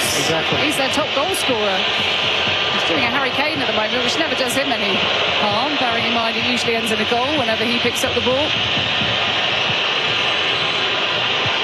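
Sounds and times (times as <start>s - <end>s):
football supporters whistling in stadium: 0.0s - 11.6s
speech: 0.2s - 9.5s.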